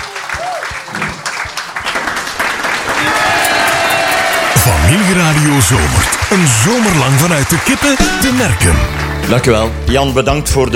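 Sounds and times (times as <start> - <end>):
audience applause: 0.0 - 9.6
speech: 4.9 - 10.7.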